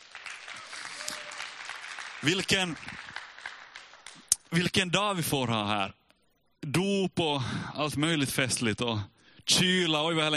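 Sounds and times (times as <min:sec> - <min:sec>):
audience applauding the worship band: 0:00.0 - 0:04.4
speech: 0:02.2 - 0:03.1, 0:04.5 - 0:06.0, 0:06.6 - 0:10.3.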